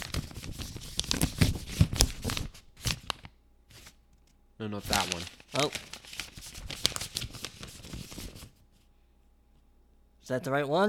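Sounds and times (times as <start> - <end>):
paper name slips rustling in a hat for a giveaway draw: 0.0 - 4.0, 4.8 - 8.6
speech: 4.6 - 6.0, 10.3 - 10.8.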